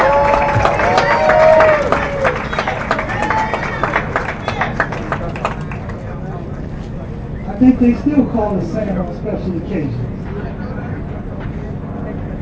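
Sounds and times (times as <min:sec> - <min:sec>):
voices and cheering: 0:00.0 - 0:05.4
crowd applauding to honor a man at a gathering: 0:00.0 - 0:06.3
speech: 0:07.7 - 0:10.1.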